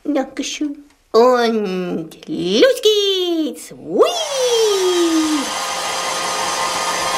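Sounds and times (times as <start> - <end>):
speech: 0.2 - 5.6
hair dryer blowing: 4.2 - 7.1.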